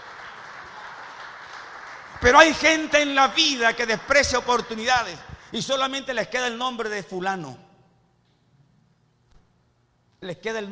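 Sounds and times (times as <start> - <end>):
audience applause: 0.0 - 2.9
speech: 2.2 - 7.6, 10.2 - 10.7.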